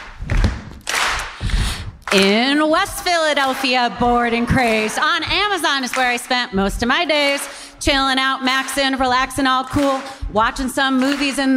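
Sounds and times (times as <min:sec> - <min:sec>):
stomp clap beat: 0:00.0 - 0:11.5
speech: 0:02.1 - 0:11.5.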